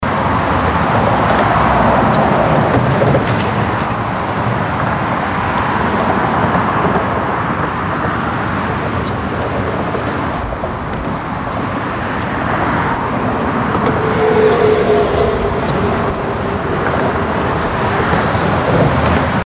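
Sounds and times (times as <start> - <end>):
traffic on a bridge: 0.0 - 19.4.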